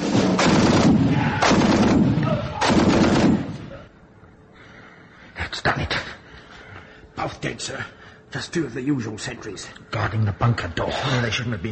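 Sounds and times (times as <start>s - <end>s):
gunfire: 0.2s - 3.7s
speech: 7.7s - 11.7s.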